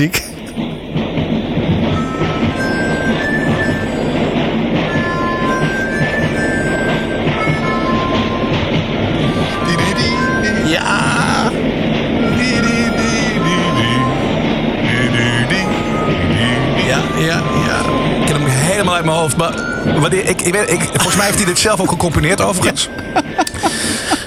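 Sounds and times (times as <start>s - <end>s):
speech: 0.0s - 0.3s, 18.9s - 23.2s
train sounds rumbling and clattering: 0.0s - 24.2s
music track with short tonal melody notes: 0.6s - 23.6s
rising whistle-like sweep: 1.8s - 7.4s, 12.2s - 23.0s
laughter: 20.7s - 24.2s.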